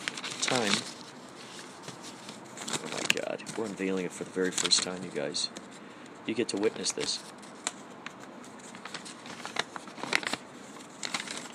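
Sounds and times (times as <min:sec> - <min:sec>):
envelope paper crackling as it is opened: 0:00.0 - 0:05.7, 0:06.3 - 0:11.5
speech: 0:00.5 - 0:00.9, 0:03.6 - 0:05.6, 0:06.3 - 0:07.4.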